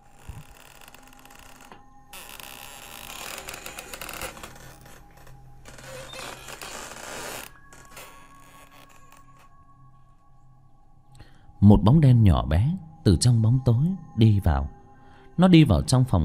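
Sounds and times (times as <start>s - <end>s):
door being pushed open, creaking: 0.0s - 9.6s
speech: 11.7s - 14.8s, 15.4s - 16.2s.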